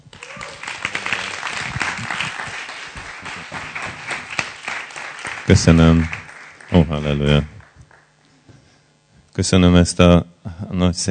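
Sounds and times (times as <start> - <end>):
audience applause: 0.0 - 8.1
speech: 5.5 - 7.6, 9.4 - 11.0.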